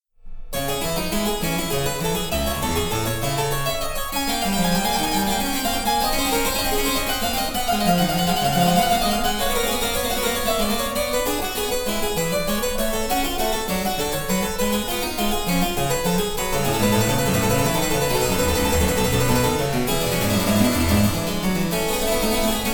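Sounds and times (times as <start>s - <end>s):
harpsichord: 0.6s - 22.7s.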